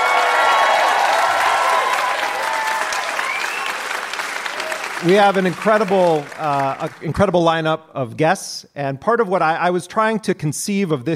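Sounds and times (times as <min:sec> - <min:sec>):
live theatre audience at the Hot Docs Theater in Toronto applauding and cheering: 0:00.0 - 0:07.3
speech: 0:05.0 - 0:11.1.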